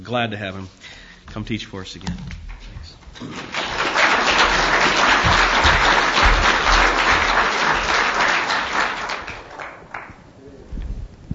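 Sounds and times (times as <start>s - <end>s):
speech: 0.1s - 2.5s, 3.2s - 3.5s
audience clapping: 2.4s - 10.3s.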